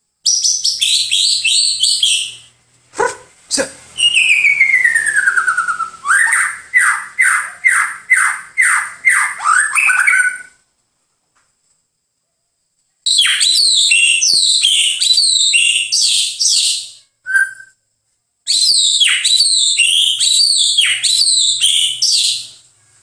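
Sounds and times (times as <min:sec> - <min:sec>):
bird song: 0:00.2 - 0:02.6, 0:03.9 - 0:10.6, 0:13.1 - 0:17.8, 0:18.5 - 0:23.0.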